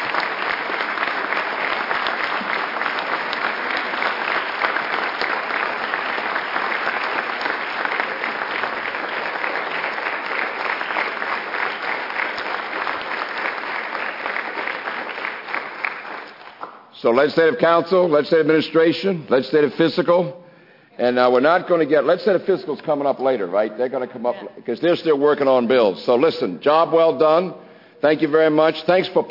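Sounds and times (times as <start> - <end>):
audience applause: 0.0 - 16.8
speech: 17.0 - 20.4, 21.0 - 29.2.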